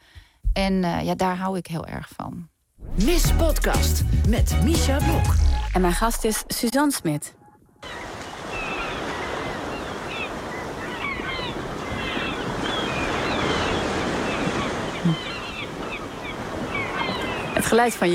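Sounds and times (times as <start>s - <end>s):
speech: 0.6s - 8.0s, 17.7s - 18.1s
sea waves on the beach: 7.8s - 18.1s.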